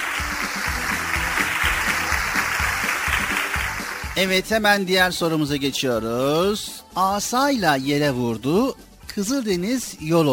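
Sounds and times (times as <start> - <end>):
studio audience applause on a Turkish religious quiz show: 0.0 - 4.2
speech: 4.2 - 10.3.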